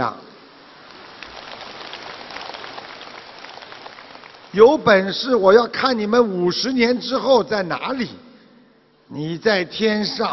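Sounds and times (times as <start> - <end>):
enthusiastic audience applause: 0.8 - 4.8
speech: 4.5 - 8.2, 9.1 - 10.3.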